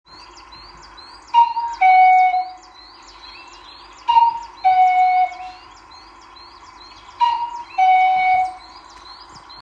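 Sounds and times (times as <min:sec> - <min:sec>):
cuckoo flute: 0:01.4 - 0:02.7, 0:04.1 - 0:05.7, 0:07.2 - 0:08.7.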